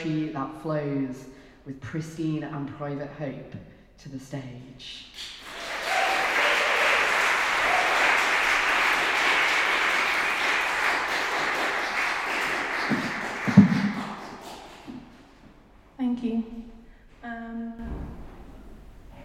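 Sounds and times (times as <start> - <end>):
speech: 0.0 - 5.5
audience applause at a poetry event: 5.4 - 15.0.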